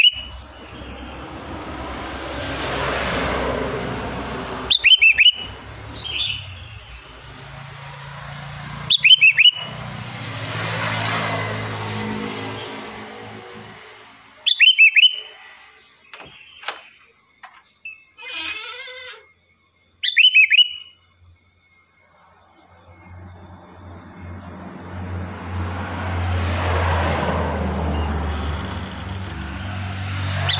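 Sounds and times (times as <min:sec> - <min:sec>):
sooty-headed bulbul whistling: 0:00.0 - 0:01.1, 0:04.6 - 0:07.1, 0:08.8 - 0:09.8, 0:14.4 - 0:16.8, 0:20.0 - 0:21.0
soft background traffic: 0:00.0 - 0:19.2, 0:20.1 - 0:21.0, 0:21.7 - 0:30.5
scattered clicks and chirps: 0:16.1 - 0:19.2.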